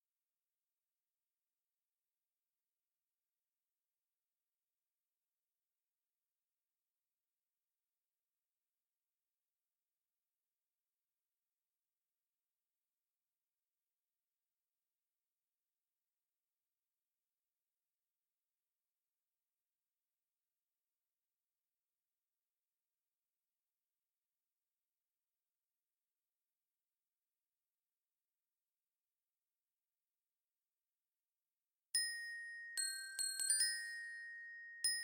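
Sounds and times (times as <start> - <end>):
glockenspiel: 32.0 - 35.0.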